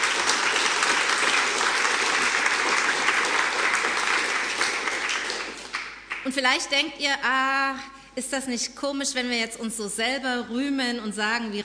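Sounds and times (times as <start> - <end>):
audience clapping: 0.0 - 6.4
speech: 6.3 - 11.6.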